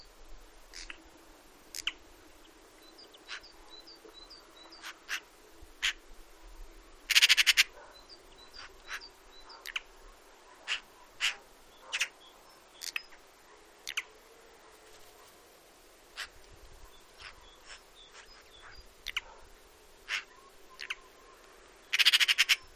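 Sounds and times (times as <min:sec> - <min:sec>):
Eurasian magpie harsh calls and rattling chatter: 0:00.7 - 0:01.0, 0:03.2 - 0:03.5, 0:04.8 - 0:06.0, 0:07.1 - 0:07.7, 0:08.5 - 0:09.9, 0:10.6 - 0:12.2, 0:16.2 - 0:16.4, 0:17.2 - 0:19.3, 0:20.0 - 0:21.1, 0:21.9 - 0:22.7.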